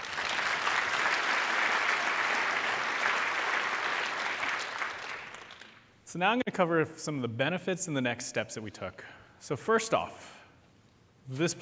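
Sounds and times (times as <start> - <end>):
audience applause: 0.0 - 5.8
speech: 6.1 - 10.4, 11.3 - 11.6.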